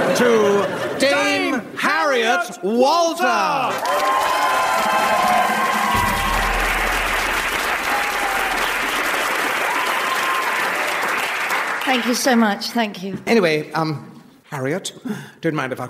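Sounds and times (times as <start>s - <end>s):
speech: 0.2s - 5.8s, 11.9s - 15.8s
audience applause: 3.7s - 12.3s.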